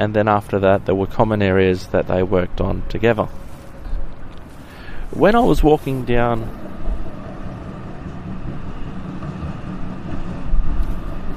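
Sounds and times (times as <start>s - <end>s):
speech: 0.0s - 3.4s, 5.1s - 6.8s
tram passing by: 0.0s - 11.3s.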